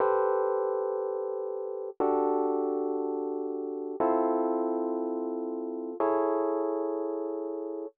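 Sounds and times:
Rhodes electric piano in nu jazz house style: 0.0s - 7.9s.

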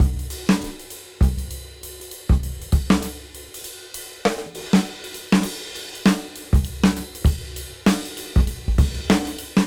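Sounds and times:
swing beat at 98 BPM: 0.0s - 9.6s.

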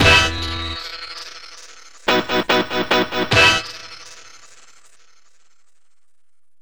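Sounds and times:
static hit: 0.0s - 0.9s, 2.1s - 4.1s.

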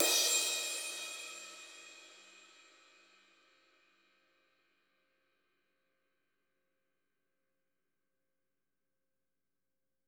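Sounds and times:
cymbal: 0.0s - 4.3s.

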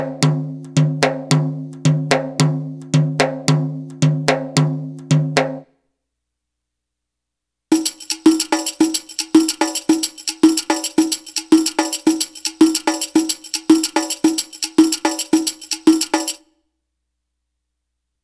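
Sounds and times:
Arabic rhythm percussion: 0.0s - 5.6s, 7.7s - 16.5s.

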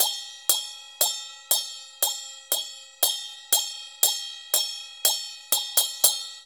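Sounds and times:
music: 0.0s - 6.4s.

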